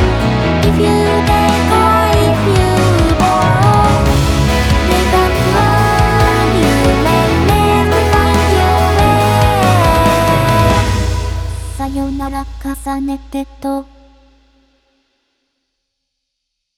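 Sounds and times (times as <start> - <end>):
emotional acoustic version: 0.0 - 12.2.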